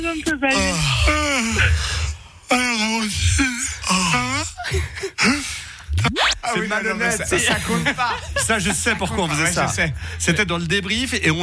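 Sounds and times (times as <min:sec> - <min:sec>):
speech: 0:00.0 - 0:11.4
person yawning: 0:00.5 - 0:05.8
laughter: 0:04.2 - 0:05.4, 0:07.0 - 0:09.9.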